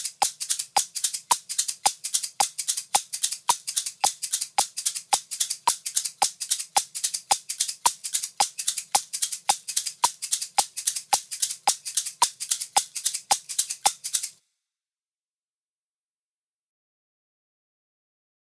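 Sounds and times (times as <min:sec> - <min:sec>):
shakers: 0:00.0 - 0:14.4.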